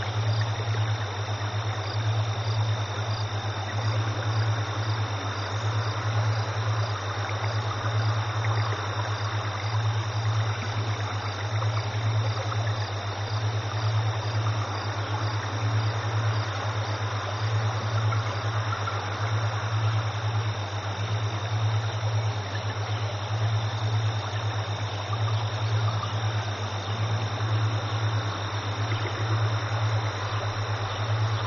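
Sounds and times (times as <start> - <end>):
ambience: 0.0 - 31.4.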